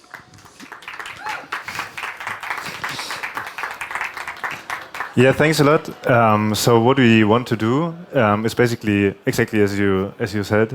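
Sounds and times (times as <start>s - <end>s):
crowd applauding: 0.0s - 9.0s
faint murmur of voices: 0.0s - 10.7s
speech: 5.2s - 10.7s.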